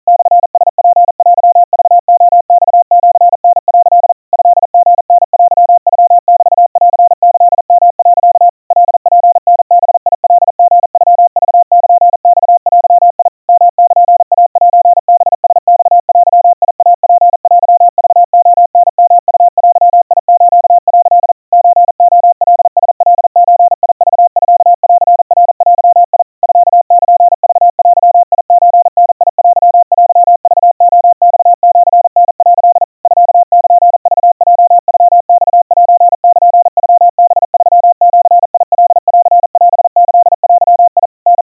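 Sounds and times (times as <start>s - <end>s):
crispy Morse code tones at 700 Hz, 150 cpm: 0.1s - 41.4s.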